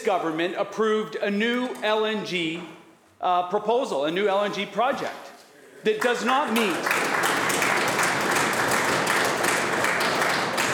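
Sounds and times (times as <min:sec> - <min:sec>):
speech: 0:00.0 - 0:05.2, 0:05.8 - 0:07.4
legislators clapping: 0:05.9 - 0:10.7.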